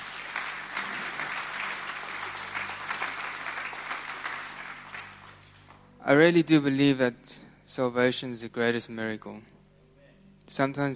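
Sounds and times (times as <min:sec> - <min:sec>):
audience applause: 0:00.0 - 0:05.8
speech: 0:06.1 - 0:09.6, 0:10.5 - 0:10.9.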